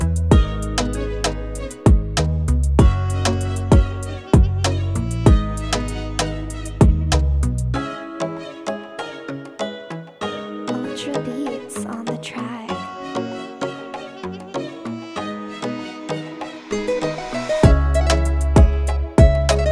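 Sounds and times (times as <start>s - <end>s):
oriental dancehall type beat instrumental: 0.0s - 7.4s, 16.0s - 19.6s.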